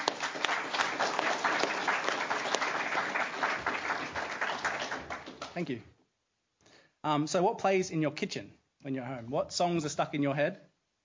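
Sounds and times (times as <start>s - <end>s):
audience applauding: 0.0s - 5.8s
speech: 5.6s - 5.9s, 7.0s - 10.7s.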